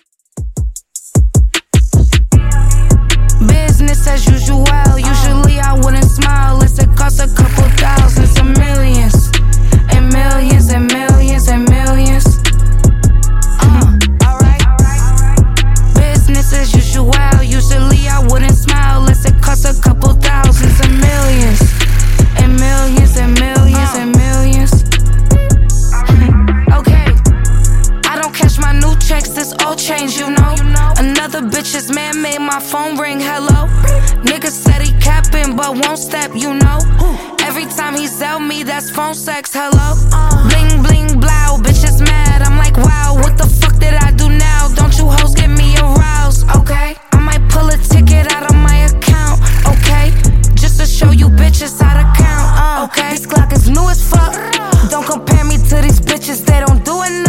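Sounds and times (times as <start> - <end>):
DJ intro outro music at 77 BPM: 0.4 - 57.2.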